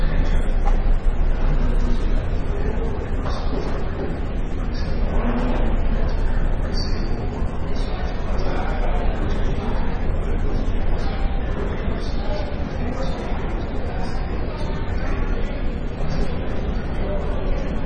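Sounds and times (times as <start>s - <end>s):
airport ambience: 0.0s - 17.8s.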